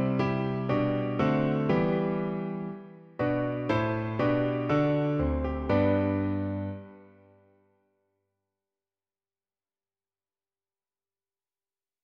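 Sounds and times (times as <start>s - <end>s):
piano version: 0.0s - 7.4s.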